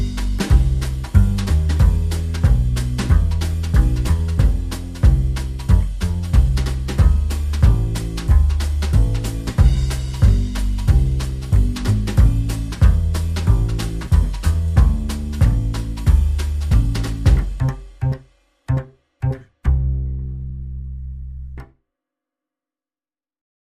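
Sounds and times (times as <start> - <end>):
drums: 0.0 - 19.0
bass: 0.0 - 21.8.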